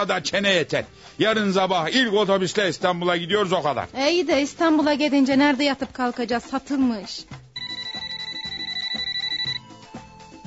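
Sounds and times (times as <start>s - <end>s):
speech: 0.0s - 7.4s
mobile phone ringing: 7.6s - 10.0s.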